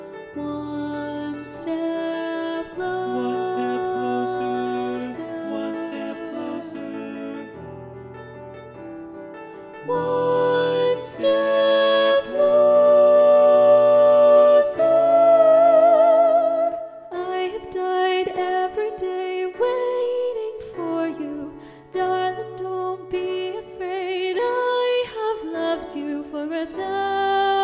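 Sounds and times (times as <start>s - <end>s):
soprano singing: 0.0s - 7.9s, 9.8s - 27.6s.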